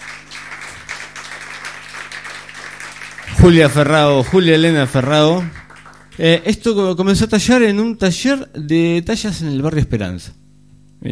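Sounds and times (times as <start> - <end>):
audience applause: 0.0 - 6.7
speech: 3.4 - 5.6, 6.2 - 10.4, 11.0 - 11.1.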